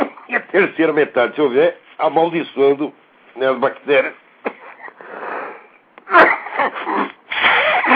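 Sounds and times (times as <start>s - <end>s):
speech: 0.5s - 4.2s, 6.6s - 7.1s
person coughing or sneezing from a cold: 4.4s - 5.0s, 6.1s - 7.9s.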